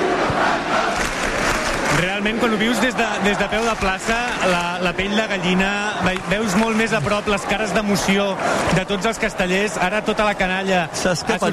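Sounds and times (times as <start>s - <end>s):
crowd cheering for castellers in square: 0.0s - 11.5s
speech: 2.0s - 11.5s.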